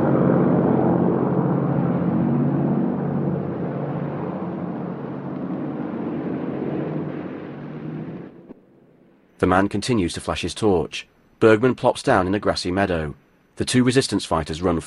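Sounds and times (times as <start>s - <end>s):
airplane engine droning: 0.0s - 10.4s
speech: 9.5s - 14.8s.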